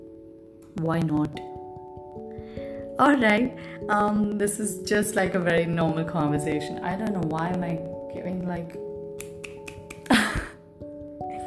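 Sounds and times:
speech: 0:00.8 - 0:01.6, 0:03.0 - 0:08.9
one-handed clap snap: 0:09.2 - 0:10.2.

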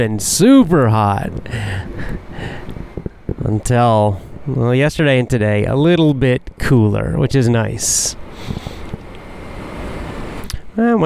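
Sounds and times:
speech: 0:00.0 - 0:02.6, 0:03.5 - 0:08.7, 0:10.8 - 0:11.0
train passing by a station: 0:00.0 - 0:10.9
soft low thumps: 0:00.6 - 0:07.4.

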